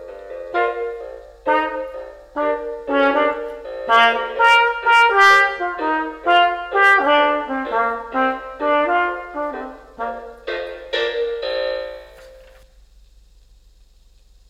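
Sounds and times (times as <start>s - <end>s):
trumpet: 0.4s - 10.7s.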